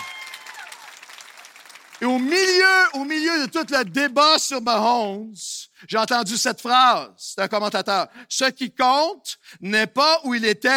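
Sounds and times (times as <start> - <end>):
audience applause: 0.0 - 2.9
speech: 2.0 - 10.7.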